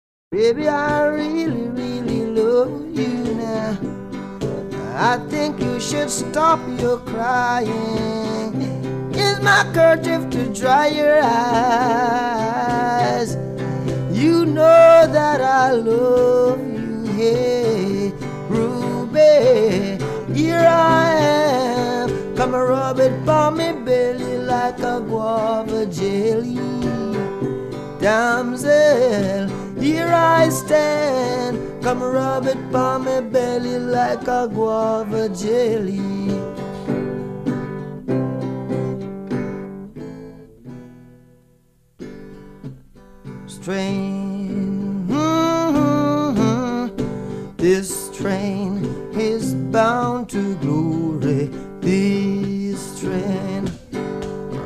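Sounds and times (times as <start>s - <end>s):
acoustic music: 0.3s - 54.6s.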